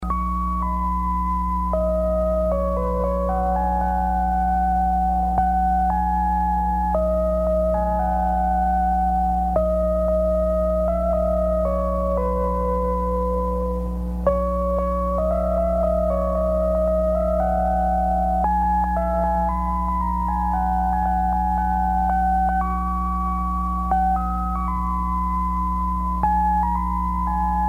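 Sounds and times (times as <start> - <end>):
music: 0.0 - 27.6.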